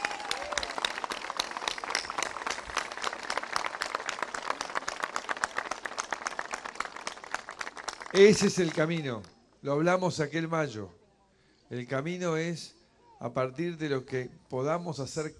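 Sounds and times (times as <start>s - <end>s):
audience applause: 0.0s - 8.8s
speech: 8.2s - 11.0s, 11.7s - 15.3s.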